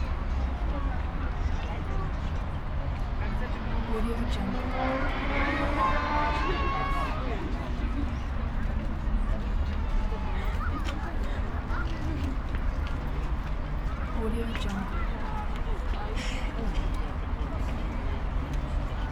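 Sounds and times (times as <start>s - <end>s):
city pedestrian street ambience: 0.0s - 19.1s.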